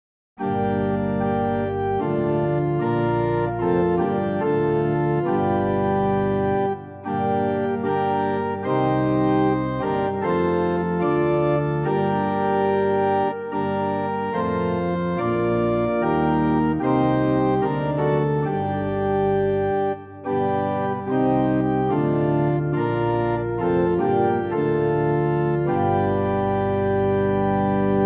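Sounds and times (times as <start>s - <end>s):
organ at pitch 440 in equal temperament: 0.4s - 28.0s.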